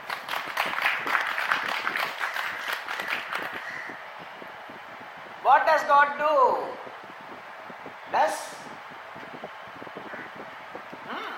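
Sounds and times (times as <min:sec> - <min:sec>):
audience clapping: 0:00.0 - 0:03.8
speech: 0:05.6 - 0:06.9, 0:08.1 - 0:08.6.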